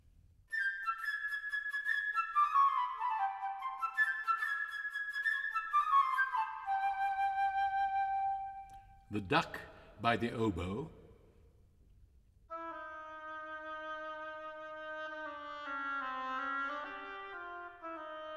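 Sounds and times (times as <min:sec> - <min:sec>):
flute playing a melody: 0:00.5 - 0:09.1, 0:12.5 - 0:18.3
speech: 0:09.1 - 0:11.0.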